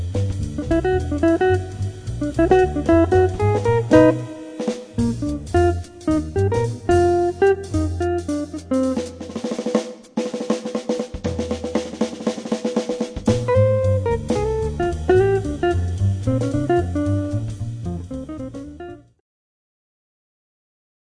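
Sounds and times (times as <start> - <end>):
jazz trio playing: 0.0 - 19.1.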